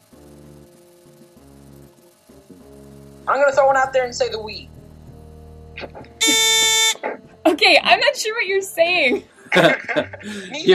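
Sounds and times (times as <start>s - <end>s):
quiz buzzer buzzing in: 0.0s - 7.2s
speech: 3.3s - 4.7s, 6.2s - 6.7s, 7.4s - 10.7s
laughter: 9.1s - 10.7s.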